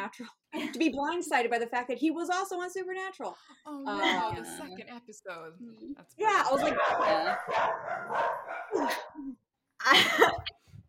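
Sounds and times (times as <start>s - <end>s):
speech: 0.1s - 10.7s
two dogs barking and yipping: 6.6s - 9.2s.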